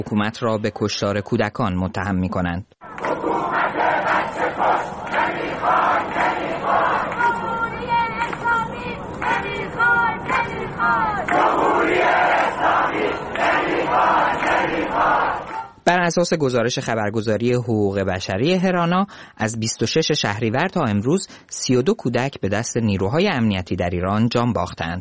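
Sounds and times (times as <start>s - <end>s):
speech: 0.0s - 4.9s, 16.0s - 25.0s
protesters in Ekbatan Iran chanting slogans against dictatorship in passageways: 2.8s - 15.8s.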